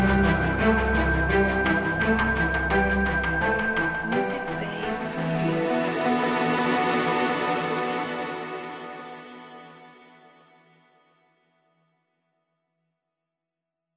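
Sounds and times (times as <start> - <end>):
epic hopeful trailer music: 0.0 - 10.3.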